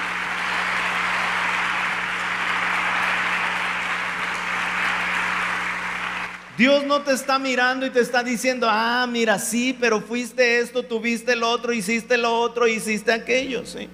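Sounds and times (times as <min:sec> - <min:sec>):
audience applause: 0:00.0 - 0:06.6
low electrical hum: 0:00.0 - 0:13.9
speech: 0:06.6 - 0:13.9.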